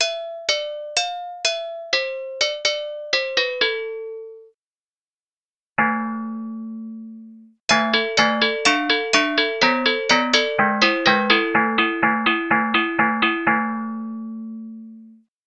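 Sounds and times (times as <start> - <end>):
agogo bells: 0.0 - 4.4, 7.7 - 14.5.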